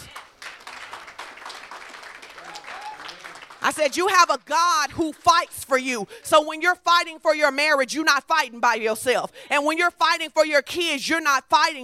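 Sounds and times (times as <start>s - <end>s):
audience hand clapping: 0.0s - 4.4s
speech: 3.7s - 11.8s.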